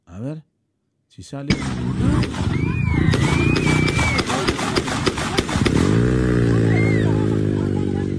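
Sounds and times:
speech: 0.2s - 0.5s, 1.1s - 3.3s
gunshots: 1.5s - 6.6s
laughter: 1.6s - 8.1s
people screaming: 1.9s - 4.5s, 5.9s - 8.1s.

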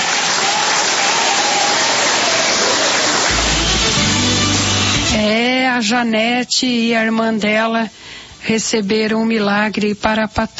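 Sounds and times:
church congregation clapping hands: 0.0s - 5.2s
speech: 5.8s - 10.5s.

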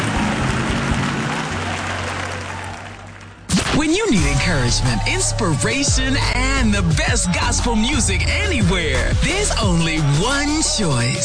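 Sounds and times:
crowd clapping: 0.0s - 5.0s
speech: 3.8s - 11.2s.

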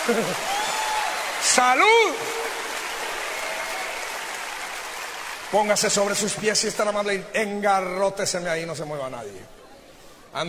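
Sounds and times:
audience applauding: 0.0s - 7.0s
speech: 0.1s - 0.7s, 1.4s - 2.7s, 5.5s - 9.6s.

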